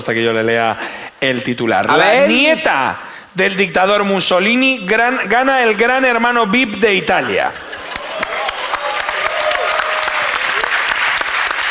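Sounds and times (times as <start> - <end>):
speech: 0.0 - 7.7
strong applause: 7.8 - 11.6.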